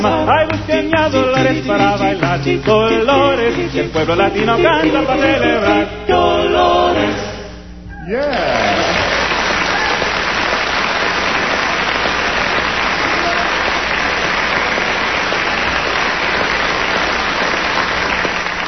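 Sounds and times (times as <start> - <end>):
speech: 0.6 - 7.4, 8.0 - 9.1
audience applause: 8.2 - 18.6.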